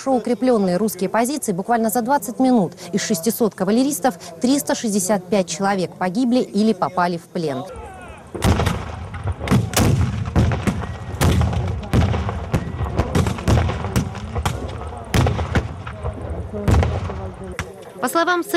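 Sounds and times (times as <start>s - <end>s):
speech: 0.0s - 8.5s, 18.2s - 18.5s
gunfire at a battle reenactment: 8.3s - 17.8s.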